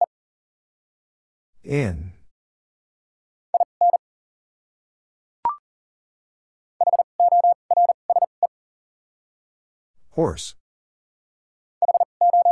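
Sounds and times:
speech: 1.6s - 2.1s, 10.2s - 10.6s
Morse code tones at 40 wpm: 6.8s - 8.3s, 11.8s - 12.5s.

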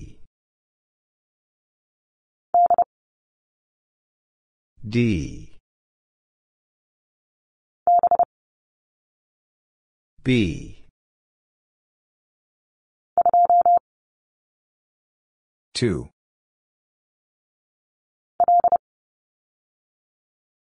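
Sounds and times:
morse code letter x: 2.6s - 2.9s, 7.9s - 8.3s, 13.2s - 13.8s, 18.4s - 18.8s.

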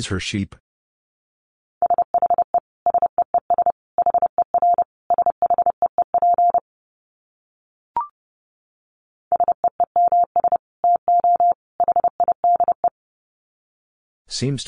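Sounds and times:
speech: 0.0s - 0.6s, 14.4s - 14.6s
Morse code tones at 30 wpm: 1.8s - 6.6s, 9.3s - 12.9s.

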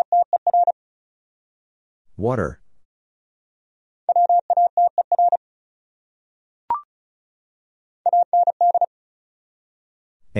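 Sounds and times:
fast Morse code beeps: 0.0s - 0.8s, 4.1s - 5.4s, 8.1s - 8.9s
speech: 2.2s - 2.6s.

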